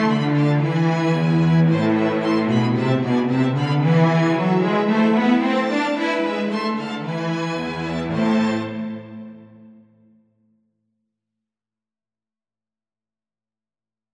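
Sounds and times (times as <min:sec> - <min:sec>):
instrumental music: 0:00.0 - 0:10.1.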